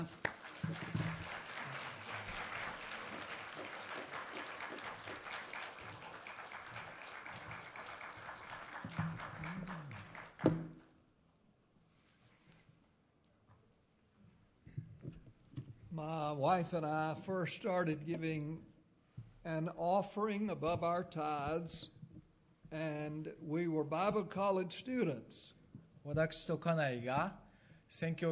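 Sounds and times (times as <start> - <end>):
speech: 0.0 - 0.8, 16.0 - 18.7, 19.4 - 22.0, 22.7 - 28.3
crowd applause: 0.0 - 10.8.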